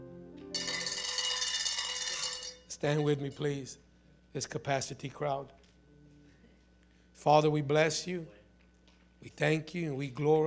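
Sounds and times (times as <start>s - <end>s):
bell ringing loudly: 0.6s - 3.4s
speech: 2.8s - 5.6s, 7.2s - 8.4s, 9.2s - 10.4s.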